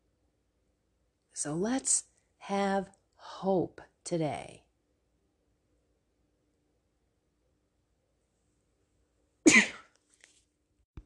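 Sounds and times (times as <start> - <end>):
speech: 1.4 - 4.6
speaker throat clearing during a sermon recording: 9.5 - 9.9.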